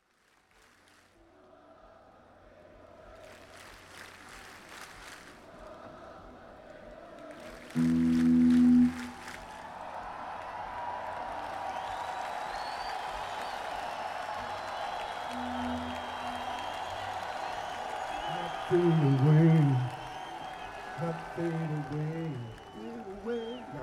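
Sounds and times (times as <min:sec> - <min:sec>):
crowd: 0:00.0 - 0:23.8
instruments tuning: 0:07.8 - 0:09.5, 0:15.3 - 0:17.0.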